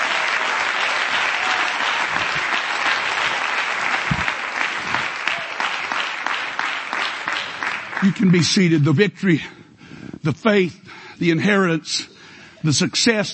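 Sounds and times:
audience clapping hands: 0.0s - 9.1s
speech: 8.0s - 9.6s, 10.2s - 13.3s.

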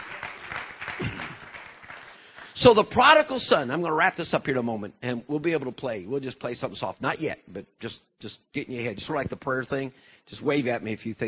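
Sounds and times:
audience hand clapping: 0.0s - 3.3s
speech: 2.6s - 11.2s.

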